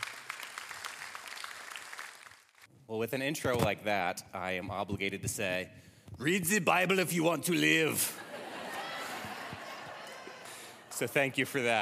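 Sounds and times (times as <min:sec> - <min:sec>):
audience round of applause: 0:00.0 - 0:02.6, 0:08.6 - 0:11.0
speech: 0:02.9 - 0:08.3, 0:11.0 - 0:11.8
laughter: 0:07.9 - 0:11.8.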